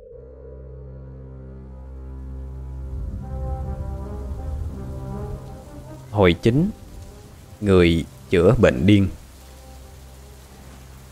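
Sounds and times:
heavy rain pouring: 2.4 - 11.1
speech: 6.2 - 6.8, 7.6 - 9.2.

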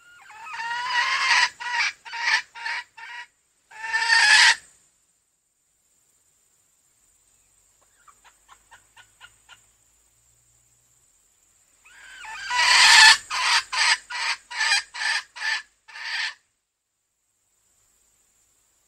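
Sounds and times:
female junglefowl clucking: 0.0 - 4.6, 7.8 - 9.6, 11.8 - 16.4.

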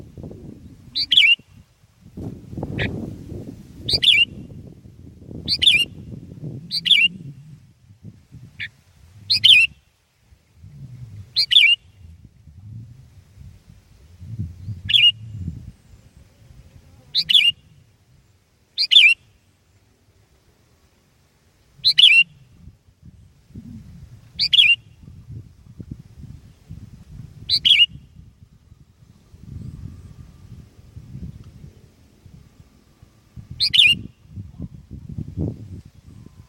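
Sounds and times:
Sooty-headed bulbul singing: 0.6 - 1.6, 3.8 - 4.6, 5.4 - 7.4, 9.3 - 9.8, 11.4 - 12.1, 14.6 - 16.3, 17.1 - 17.8, 18.8 - 19.3, 21.8 - 22.5, 24.4 - 25.4, 27.4 - 28.2, 33.5 - 34.4.

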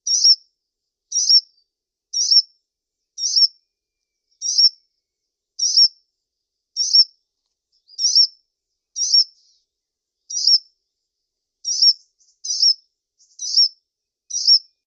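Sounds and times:
brown-throated sunbird repeating a high sharp chip: 0.0 - 0.4, 1.1 - 2.5, 3.2 - 3.6, 4.3 - 4.8, 5.6 - 6.0, 6.7 - 7.1, 7.7 - 9.6, 10.2 - 10.7, 11.6 - 14.8.

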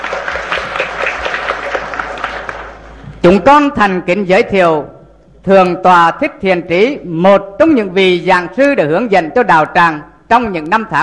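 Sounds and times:
audience applause greeting a senior guest monk at a Buddhist ceremony: 0.0 - 3.0
speech: 3.2 - 11.0.

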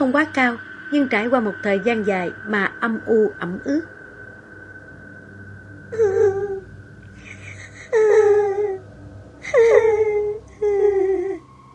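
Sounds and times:
speech: 0.0 - 4.0, 5.9 - 6.2
faint eerie crying wail: 5.9 - 6.6, 7.2 - 8.8, 9.4 - 11.4.

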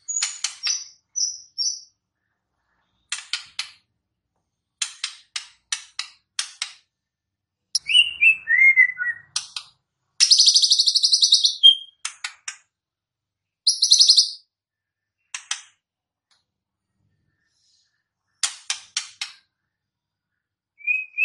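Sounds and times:
White-rumped shama song of clicks, whistles and buzzy trills: 7.8 - 9.4, 10.2 - 12.0, 13.7 - 14.4, 20.8 - 21.2.

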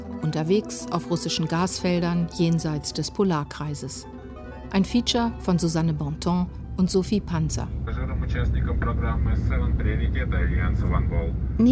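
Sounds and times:
speech: 0.2 - 11.6
Russian airline airliner engine roar in flight: 6.0 - 11.6.

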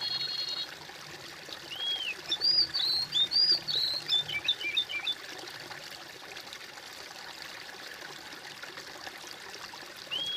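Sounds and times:
bird singing: 0.0 - 0.7, 1.7 - 5.2, 10.1 - 10.3.

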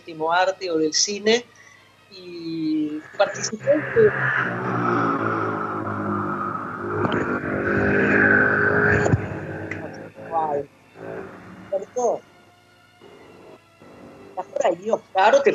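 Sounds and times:
speech: 0.0 - 5.0, 12.0 - 12.3, 14.4 - 15.5
motorcycle passing by outside a house: 2.4 - 12.2.

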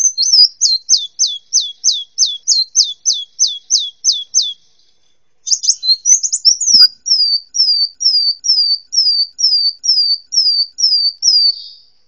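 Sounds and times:
hummingbird uttering high chips and trills: 0.0 - 4.6, 5.5 - 11.5.

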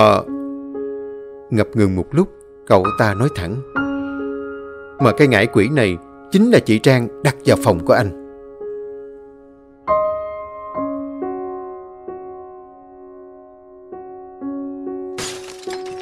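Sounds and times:
speech: 0.0 - 0.4, 1.5 - 3.8, 5.0 - 8.2
porcelain plant pot full of soil smashing on a floor: 15.2 - 16.0.

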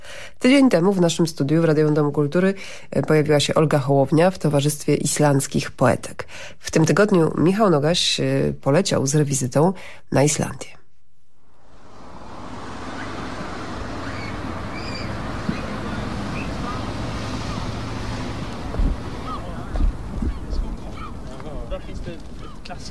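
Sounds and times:
speech: 0.4 - 10.8
wind blowing outdoors: 11.4 - 22.9.

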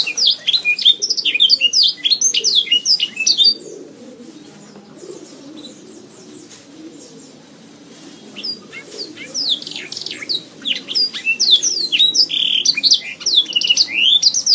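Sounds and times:
Oriental magpie-robin singing high chirps and whistles: 0.0 - 3.6, 8.4 - 14.5.

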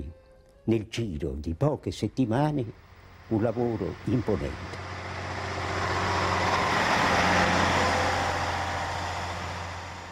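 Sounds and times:
speech: 0.7 - 4.8
trucks driving: 2.4 - 10.0.

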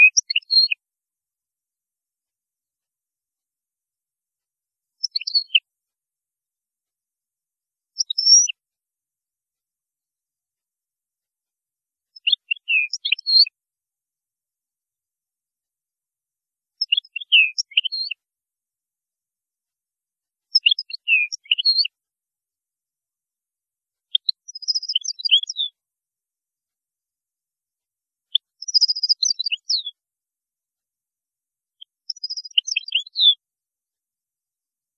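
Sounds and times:
European goldfinch twittering song: 0.0 - 0.7, 5.0 - 5.6, 8.0 - 8.5, 12.2 - 13.5, 16.8 - 18.2, 20.5 - 21.9, 24.2 - 25.8, 28.4 - 30.0, 31.9 - 33.4.

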